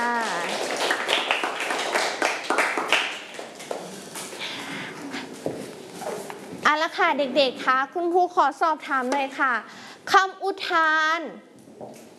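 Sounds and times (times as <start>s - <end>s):
classroom of children clapping: 0.0s - 3.9s
speech: 6.9s - 12.1s.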